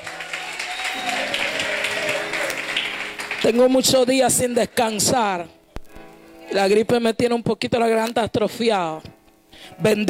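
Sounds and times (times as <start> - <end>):
audience applause: 0.0 - 4.0
speech: 3.4 - 5.6, 6.5 - 10.0.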